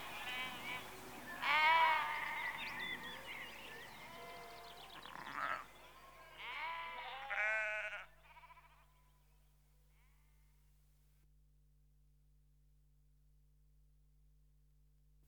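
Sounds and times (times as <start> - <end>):
sheep bleating in a rural setting: 0.1 - 2.6, 4.0 - 9.1.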